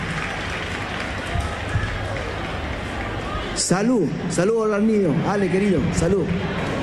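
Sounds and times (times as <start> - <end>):
audience applause: 0.0 - 4.0
speech: 3.6 - 6.7.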